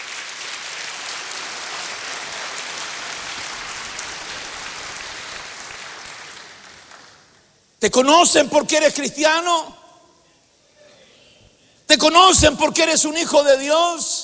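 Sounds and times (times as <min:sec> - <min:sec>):
clapping hands: 0:00.0 - 0:07.4
speech: 0:07.8 - 0:09.8, 0:12.0 - 0:14.2.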